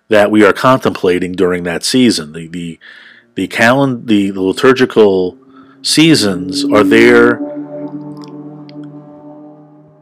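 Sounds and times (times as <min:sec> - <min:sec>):
speech: 0:00.1 - 0:07.5
traffic on Route 1 outside window: 0:02.8 - 0:09.9.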